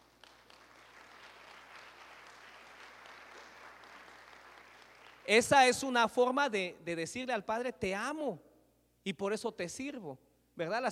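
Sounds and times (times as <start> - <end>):
church congregation applauding: 0.0 - 5.8
speech: 5.3 - 10.8.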